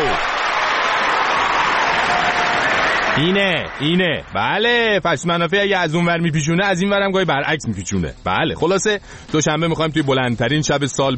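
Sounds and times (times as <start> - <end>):
hands clapping in brief applause: 0.0 - 4.1
speech: 3.2 - 11.1.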